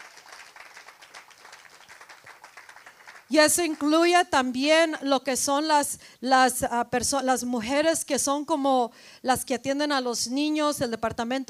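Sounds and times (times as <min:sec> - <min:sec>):
audience applause: 0:00.0 - 0:03.3
speech: 0:03.3 - 0:11.4.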